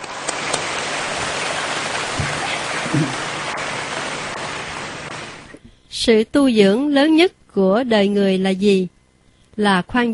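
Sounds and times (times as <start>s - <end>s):
round of applause: 0.0s - 5.4s
speech: 2.9s - 3.2s, 6.0s - 9.0s, 9.6s - 10.1s.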